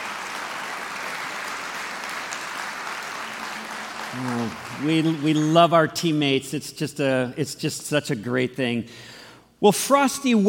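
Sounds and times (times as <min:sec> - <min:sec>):
applause: 0:00.0 - 0:06.1
speech: 0:04.1 - 0:10.4.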